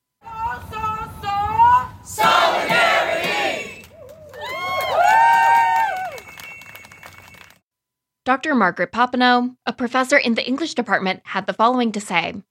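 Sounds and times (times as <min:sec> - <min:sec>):
crowd cheering at outdoor rally: 0:02.1 - 0:07.6
shrill whistle: 0:03.3 - 0:07.6
speech: 0:08.3 - 0:12.4.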